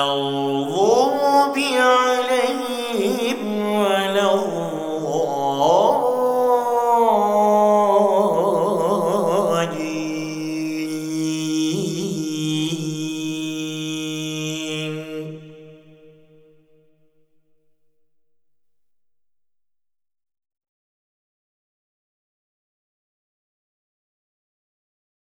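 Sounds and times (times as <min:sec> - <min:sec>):
Quran recitation in Istanbul Turkey: 0:00.0 - 0:16.8.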